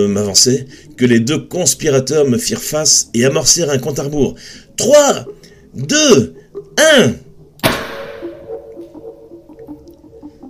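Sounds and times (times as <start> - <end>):
speech: 0.0 - 7.2
faint steady pulsing tone: 0.0 - 10.4
mini confetti cannon firing: 7.6 - 8.2.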